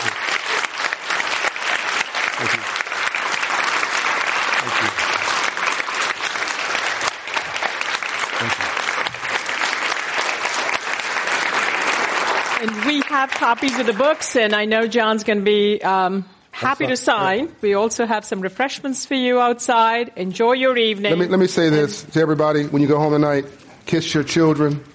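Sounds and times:
audience applause: 0:00.0 - 0:14.6
speech: 0:13.2 - 0:24.9.

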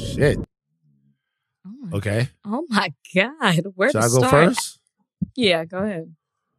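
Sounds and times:
speech: 0:00.2 - 0:00.5, 0:01.9 - 0:06.2
laughter: 0:02.0 - 0:02.3, 0:03.6 - 0:04.7
person imitating humpback whale call: 0:04.0 - 0:04.7.

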